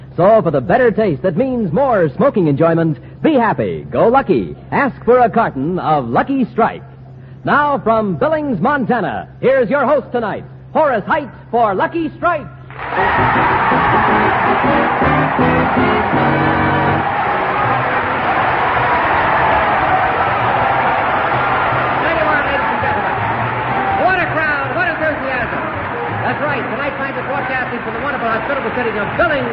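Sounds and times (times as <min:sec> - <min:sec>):
speech: 0:00.2 - 0:13.5, 0:14.6 - 0:16.6, 0:26.6 - 0:29.5
large crowd in a hall: 0:12.6 - 0:29.5.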